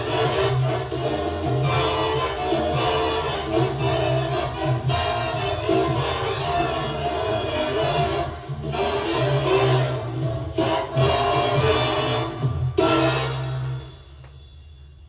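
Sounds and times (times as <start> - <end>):
backing track music at half speed without solos: 0.0 - 14.4.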